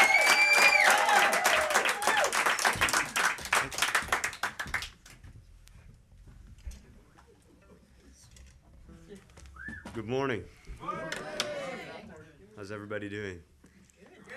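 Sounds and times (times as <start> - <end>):
audience clapping: 0.0 - 5.2
speech: 10.1 - 10.6, 12.6 - 13.5.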